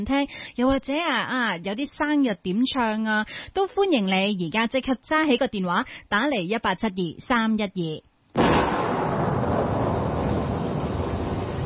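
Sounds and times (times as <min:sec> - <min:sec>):
speech: 0:00.0 - 0:08.5
heavy rain: 0:09.1 - 0:11.6.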